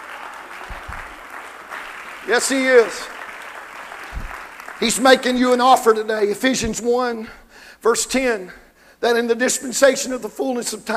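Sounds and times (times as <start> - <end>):
audience clapping hands: 0.0 - 6.2
speech: 2.3 - 3.2, 4.8 - 10.9.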